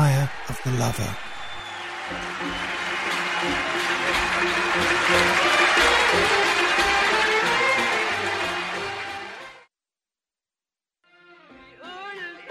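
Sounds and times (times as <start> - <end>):
concert audience applauding and cheering as a singer walks onto the stage: 0.0 - 9.7
speech: 0.2 - 1.3, 2.1 - 2.7, 3.4 - 6.8.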